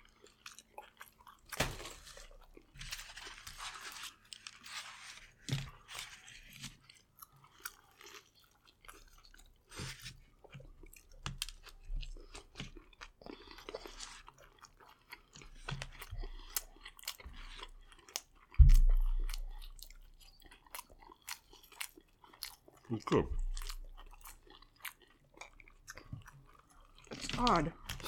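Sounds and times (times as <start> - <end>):
crunchy bites and chewing on fried chicken: 0.0 - 28.0
person saying a word: 22.9 - 23.4
speech: 22.9 - 23.4, 27.4 - 27.8.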